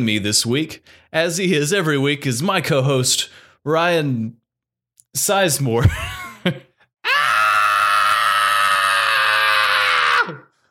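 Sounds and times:
speech: 0.0s - 4.4s, 5.1s - 6.7s
man imitating a screaming goat: 7.0s - 10.5s.

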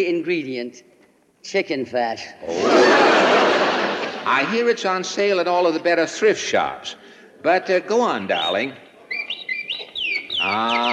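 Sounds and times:
speech: 0.0s - 8.8s, 10.4s - 10.9s
laughter: 2.4s - 4.5s
canary singing: 8.3s - 10.9s.

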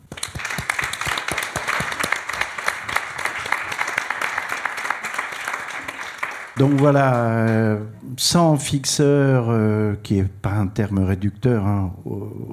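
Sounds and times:
audience applause: 0.0s - 7.9s
speech: 6.6s - 12.5s.

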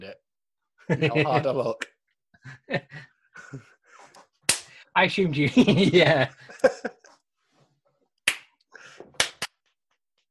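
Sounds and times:
speech: 0.0s - 3.7s, 5.0s - 7.0s
people clapping: 4.5s - 4.7s, 8.2s - 10.0s.

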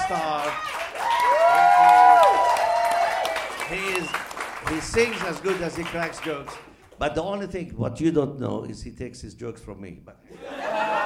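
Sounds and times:
audience applause and cheering: 0.0s - 6.8s
speech: 0.1s - 0.8s, 3.7s - 10.9s
laughter: 10.3s - 11.0s.

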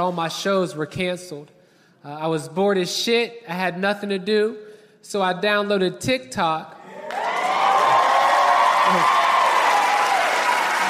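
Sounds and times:
speech: 0.0s - 6.8s, 8.9s - 9.2s
audience clapping: 7.0s - 10.8s.

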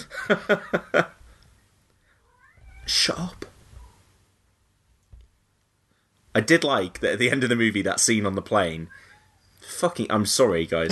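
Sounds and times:
speech: 0.3s - 1.2s, 2.9s - 3.5s, 6.4s - 10.9s
cat meowing loudly: 2.3s - 3.0s.

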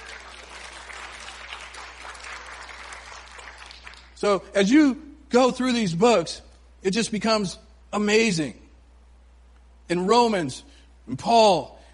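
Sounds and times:
audience hand clapping in praise: 0.0s - 4.2s
speech: 4.2s - 8.6s, 9.9s - 11.8s.

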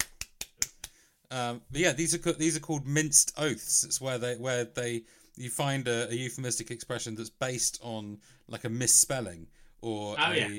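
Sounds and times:
sharp claps: 0.0s - 1.0s
speech: 1.3s - 10.5s.

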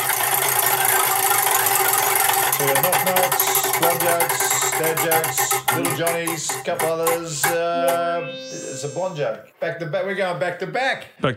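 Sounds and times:
spinning joke prize wheel ratcheting clicks: 0.1s - 8.1s
speech: 4.0s - 11.3s.

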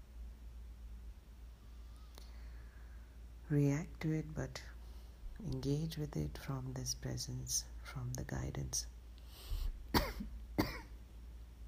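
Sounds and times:
speech: 3.5s - 4.8s, 5.4s - 8.9s
coughing from incense smoke irritating the throat during meditation: 9.9s - 10.9s.

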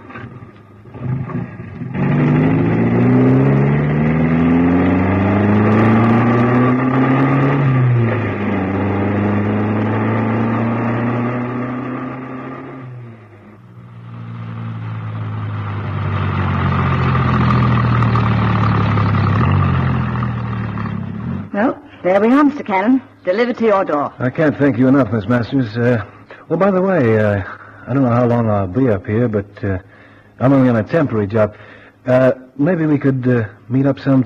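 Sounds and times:
car engine starting and revving as the car pulls away: 0.0s - 21.6s
speech: 22.2s - 34.2s.

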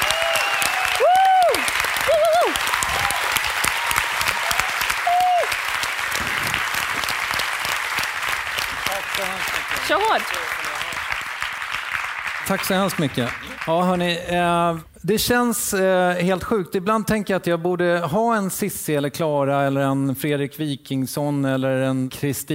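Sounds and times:
audience applause: 0.0s - 14.3s
speech: 12.5s - 22.5s.

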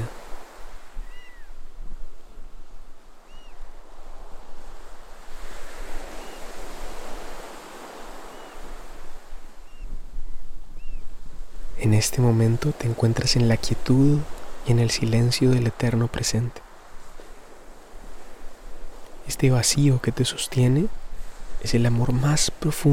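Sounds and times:
ocean waves breaking on shore: 0.0s - 22.9s
faint bird chirps: 0.9s - 1.7s, 3.2s - 3.7s, 6.1s - 6.5s, 8.2s - 8.7s, 9.6s - 11.1s
speech: 11.8s - 16.6s, 19.3s - 21.0s, 21.6s - 22.9s.

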